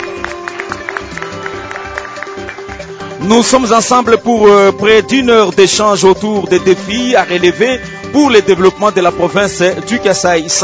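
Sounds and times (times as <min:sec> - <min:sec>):
audience applause in a hall: 0:00.0 - 0:03.2
speech: 0:03.2 - 0:10.6.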